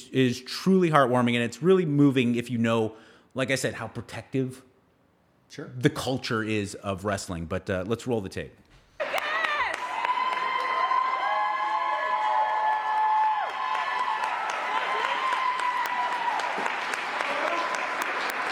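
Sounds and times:
speech: 0:00.1 - 0:04.7, 0:05.5 - 0:09.1
crowd applause and cheering: 0:09.0 - 0:18.5.

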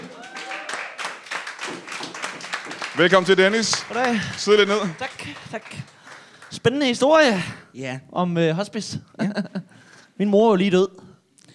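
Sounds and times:
audience applause welcoming a guest at a live show in a blues bar: 0:00.0 - 0:07.0
laughter: 0:03.0 - 0:06.0, 0:09.2 - 0:09.7
speech: 0:03.0 - 0:06.0, 0:06.6 - 0:09.5, 0:10.2 - 0:11.0.

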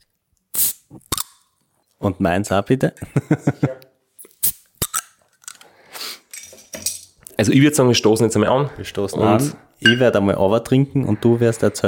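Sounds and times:
bottle of tonic being opened with fizzing hiss: 0:00.5 - 0:01.0
speech: 0:02.0 - 0:03.8, 0:07.4 - 0:11.8.

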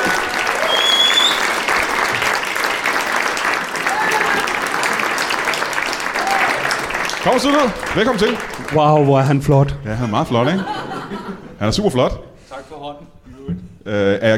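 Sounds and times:
audience applause at a Danish stage show: 0:00.0 - 0:09.4
speech: 0:07.2 - 0:10.8, 0:11.6 - 0:13.2, 0:13.8 - 0:14.3.

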